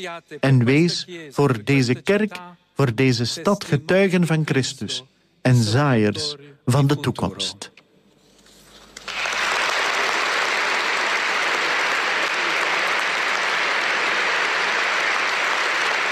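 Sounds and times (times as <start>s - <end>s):
speech: 0.0s - 7.7s
applause in a cathedral: 9.0s - 16.1s.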